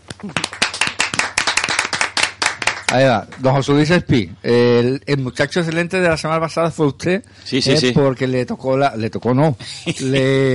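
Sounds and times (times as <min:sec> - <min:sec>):
speech: 0:00.2 - 0:00.6, 0:02.9 - 0:10.5
studio audience applause: 0:00.2 - 0:03.0.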